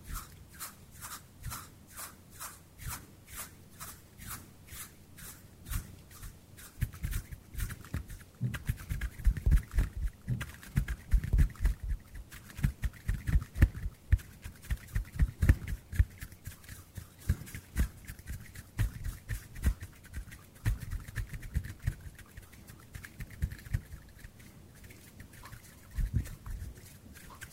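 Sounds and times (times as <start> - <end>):
faint constant hiss: 0.0 - 27.5
hand brushing and tapping: 0.0 - 27.5
rustling: 0.0 - 27.5
soft low thumps: 6.8 - 16.2.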